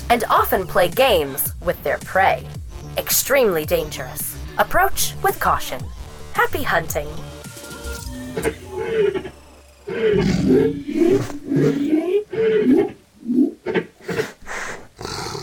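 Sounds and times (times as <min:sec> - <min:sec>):
speech: 0:00.1 - 0:07.3, 0:08.4 - 0:13.0
big cat roaring and growling: 0:08.4 - 0:14.3, 0:15.0 - 0:15.4.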